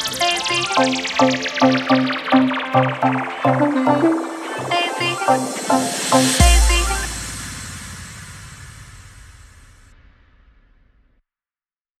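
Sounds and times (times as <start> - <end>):
hard EDM bass house mix: 0.0 - 7.4.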